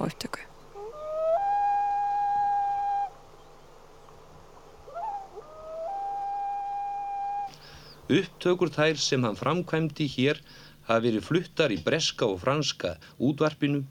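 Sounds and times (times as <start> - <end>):
speech: 0.0 - 0.5, 8.1 - 13.9
great northern diver loon wailing: 0.8 - 3.1, 4.9 - 7.5.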